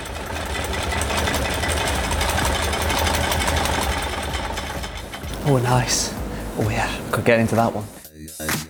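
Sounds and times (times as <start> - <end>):
hand-cranked cocktail shaking machine rattling for a Singapore Sling: 0.0 - 6.3
speech: 5.5 - 8.6.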